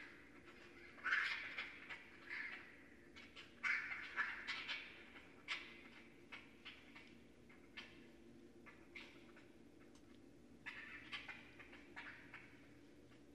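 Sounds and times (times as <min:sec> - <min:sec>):
Northern raccoon (Procyon lotor) chirping squeals and whining: 0:00.4 - 0:07.1, 0:10.6 - 0:12.5.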